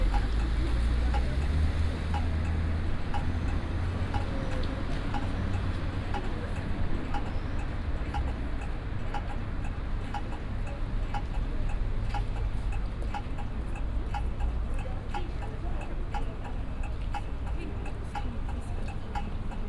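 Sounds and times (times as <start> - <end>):
traffic light signal in Stockholm: 0.0 - 19.6.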